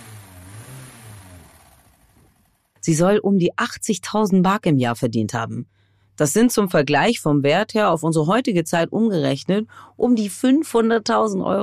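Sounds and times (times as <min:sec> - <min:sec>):
black Mercedes 190 SL car engine rumbling: 0:00.0 - 0:03.2
speech: 0:02.8 - 0:11.6.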